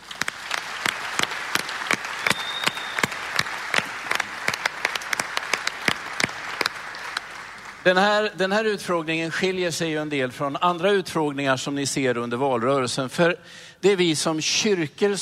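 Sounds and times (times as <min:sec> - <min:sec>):
audience applause: 0:00.0 - 0:08.0
speech: 0:07.8 - 0:15.2.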